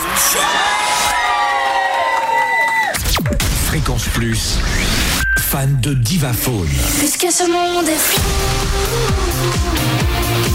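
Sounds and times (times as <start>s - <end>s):
studio audience cheering: 0.0s - 3.3s
speech: 4.0s - 4.9s, 5.5s - 10.5s.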